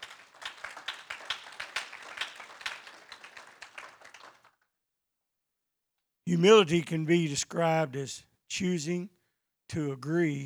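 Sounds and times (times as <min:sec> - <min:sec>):
audience clapping hands: 0:00.0 - 0:04.6
speech: 0:06.3 - 0:10.4.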